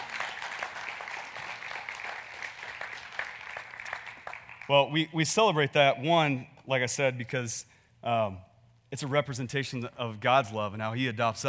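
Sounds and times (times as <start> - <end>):
audience applause: 0.0 - 4.7
speech: 4.7 - 11.4.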